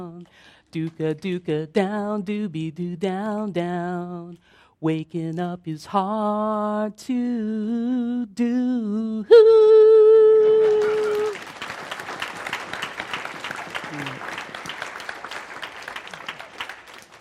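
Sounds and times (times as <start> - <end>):
speech: 0.0 - 10.8, 13.9 - 14.3
audience clapping: 10.4 - 17.1.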